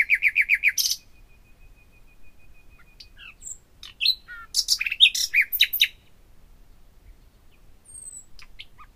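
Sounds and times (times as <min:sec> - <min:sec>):
common nightingale song: 0:00.0 - 0:08.9.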